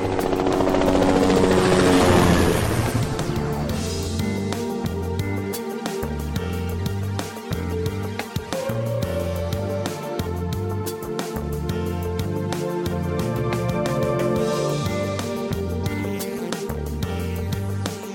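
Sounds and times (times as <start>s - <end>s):
helicopter rotor roar climbing and flying along the cliffs: 0.0s - 18.1s
low steady music tones: 0.0s - 18.1s.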